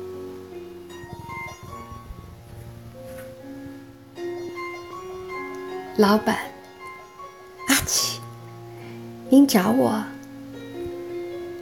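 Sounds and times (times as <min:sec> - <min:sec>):
speech: 0:06.0 - 0:06.5, 0:07.9 - 0:08.2, 0:09.3 - 0:10.2
person sneezing: 0:07.7 - 0:08.2.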